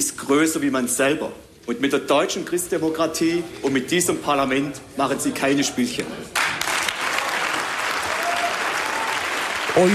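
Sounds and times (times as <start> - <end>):
speech: 0.0 - 6.6, 9.8 - 9.9
members applauding in the Baden-Württemberg state parliament: 6.4 - 9.9.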